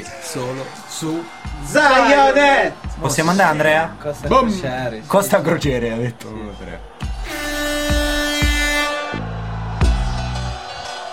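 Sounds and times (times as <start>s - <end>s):
speech: 0.3s - 7.5s
toy trumpet: 7.2s - 9.2s.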